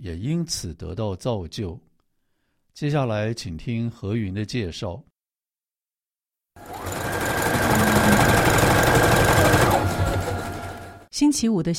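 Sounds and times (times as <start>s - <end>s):
speech: 0.0s - 1.9s, 2.8s - 5.1s, 11.2s - 11.7s
sewing machine stitching quilt blankets: 6.6s - 11.1s.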